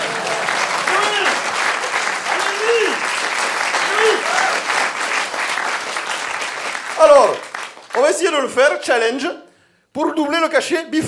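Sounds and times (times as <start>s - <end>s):
audience applause: 0.0s - 8.2s
speech: 8.1s - 9.4s, 10.0s - 11.0s.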